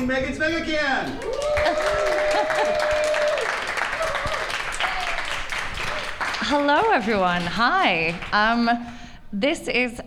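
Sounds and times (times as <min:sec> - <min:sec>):
speech: 0:00.0 - 0:03.1, 0:06.5 - 0:10.0
audience clapping and cheering: 0:00.8 - 0:08.6
whoops and shouts: 0:01.2 - 0:05.2.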